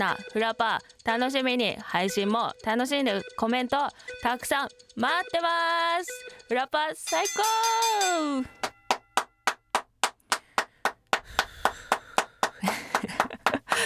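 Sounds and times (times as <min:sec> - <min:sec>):
speech: 0:00.0 - 0:08.6
staff clapping: 0:08.6 - 0:13.8
laughter: 0:12.5 - 0:13.8.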